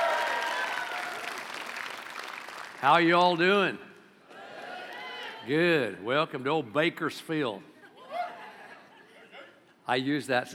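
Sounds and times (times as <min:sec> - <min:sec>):
audience applauding for the band at a church service: 0:00.0 - 0:03.0
speech: 0:02.8 - 0:03.9, 0:05.5 - 0:07.7, 0:09.9 - 0:10.5
laughter: 0:07.9 - 0:09.7.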